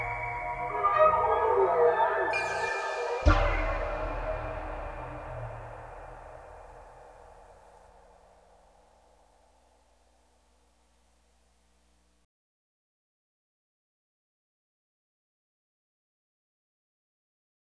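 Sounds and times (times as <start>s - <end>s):
underwater ambience: 0.0s - 7.6s.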